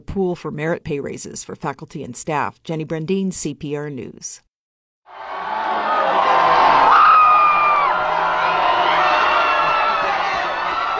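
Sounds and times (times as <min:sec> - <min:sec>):
speech: 0:00.2 - 0:04.5
hockey fans cheering in a bar at a University of Denver championship win: 0:05.1 - 0:10.9
whoops and screams: 0:05.1 - 0:10.9.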